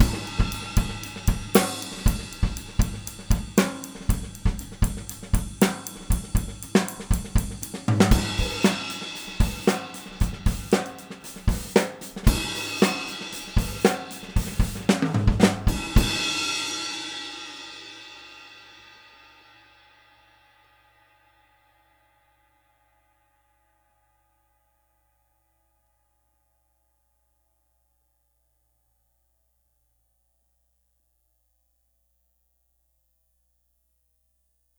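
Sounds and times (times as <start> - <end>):
20-inch Zildjian Heavy Ride cymbal: 0.0 - 17.2.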